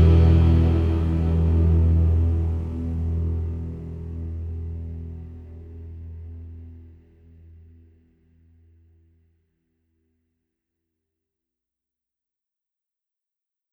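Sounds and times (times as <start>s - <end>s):
vocals: 0.0s - 3.7s.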